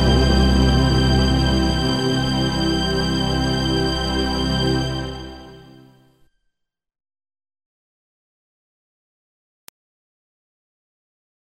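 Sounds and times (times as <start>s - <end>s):
person singing: 0.0s - 5.7s.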